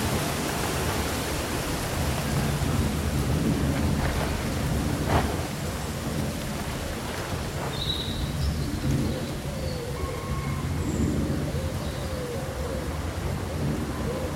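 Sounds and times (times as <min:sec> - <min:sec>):
leaves rustling: 0:00.0 - 0:10.0
soft surges of wind: 0:00.0 - 0:14.3
faint short bird calls: 0:07.7 - 0:12.9.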